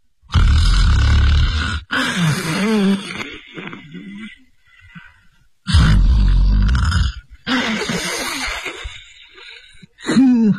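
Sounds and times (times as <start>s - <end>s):
man's voice imitating loud snoring: 0.3s - 3.2s, 5.7s - 8.3s.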